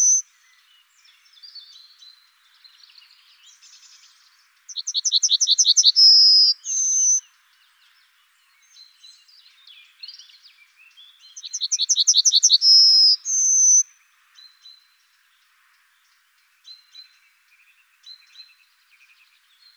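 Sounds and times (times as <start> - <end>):
yellowhammer Emberiza citrinella singing: 0.0 - 0.2, 4.7 - 7.2, 11.4 - 13.8.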